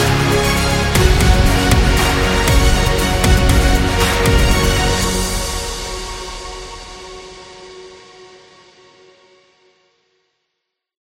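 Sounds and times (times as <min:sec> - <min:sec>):
epic corporate music: 0:00.0 - 0:08.1.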